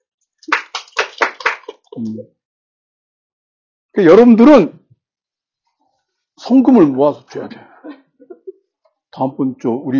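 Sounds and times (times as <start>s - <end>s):
audience clapping: 0.4s - 2.2s
speech: 2.0s - 2.4s, 3.9s - 4.8s, 6.4s - 8.0s, 9.2s - 9.9s.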